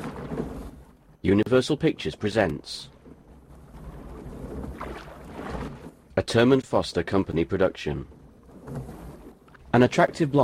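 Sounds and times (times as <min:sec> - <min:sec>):
water rippling around a thin canoe rowed along a tree-lined river: 0:00.0 - 0:10.4
speech: 0:01.2 - 0:02.9, 0:06.2 - 0:08.9, 0:09.7 - 0:10.4.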